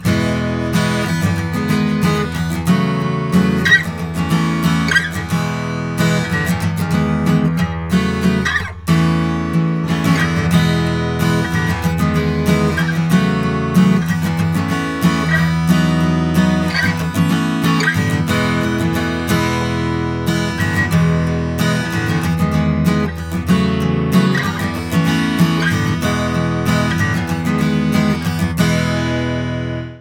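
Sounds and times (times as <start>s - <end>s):
guitar strumming: 0.0s - 29.9s.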